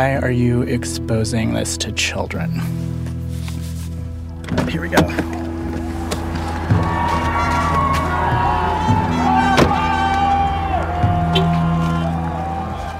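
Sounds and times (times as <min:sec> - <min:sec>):
speech: 0:00.0 - 0:03.1, 0:04.7 - 0:05.4
protesters yelling and chanting with bullhorns: 0:05.4 - 0:12.9.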